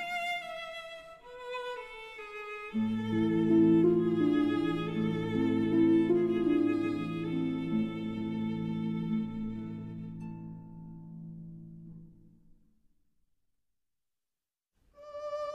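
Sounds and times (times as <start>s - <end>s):
berceuse for violin and harp: 0.0s - 11.1s, 15.0s - 15.5s.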